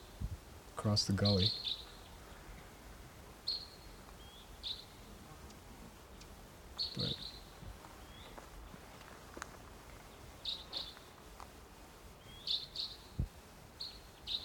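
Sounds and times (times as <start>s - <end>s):
speech: 0.8s - 1.8s, 7.0s - 7.2s
wild bird calling in the distance: 1.2s - 14.4s.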